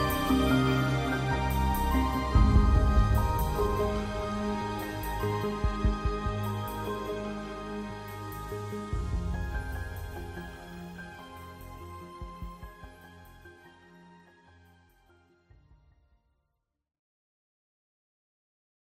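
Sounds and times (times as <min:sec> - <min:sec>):
orchestral arrangement: 0:00.0 - 0:14.2.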